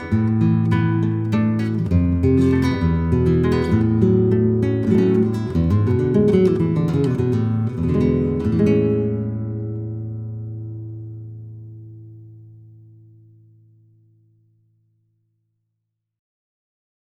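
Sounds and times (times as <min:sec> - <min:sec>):
guajira on guitar: 0:00.0 - 0:13.1.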